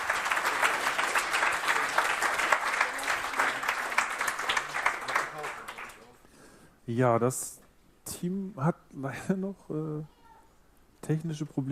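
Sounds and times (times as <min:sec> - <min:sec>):
audience applause: 0:00.0 - 0:06.2
speech: 0:06.9 - 0:10.2, 0:11.1 - 0:11.7.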